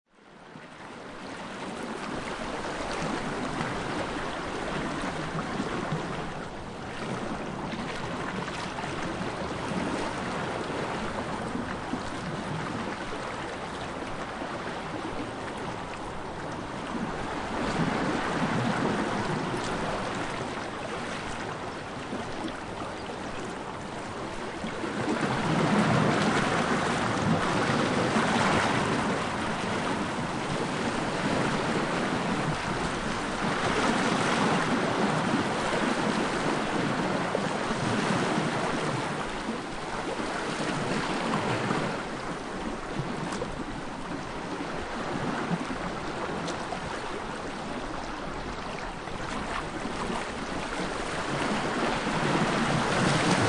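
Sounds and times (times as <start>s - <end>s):
gentle ocean waves surging against rock at sea shore: 0.7s - 53.4s.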